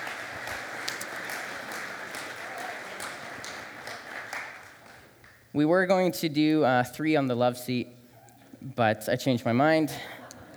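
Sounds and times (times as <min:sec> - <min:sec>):
audience clapping for panelists: 0:00.0 - 0:05.5
speech: 0:05.6 - 0:08.0, 0:08.6 - 0:10.2.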